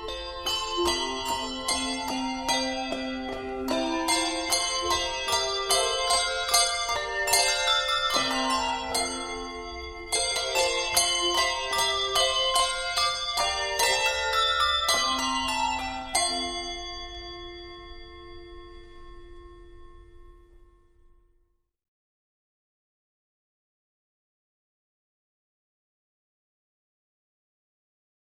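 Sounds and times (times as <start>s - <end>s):
Christmas handbells rung by handbell ringers: 0.0s - 20.0s.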